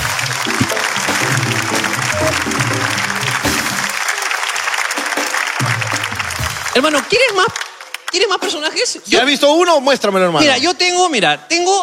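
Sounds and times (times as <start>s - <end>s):
audience applause: 0.0s - 8.4s
speech: 6.8s - 11.8s.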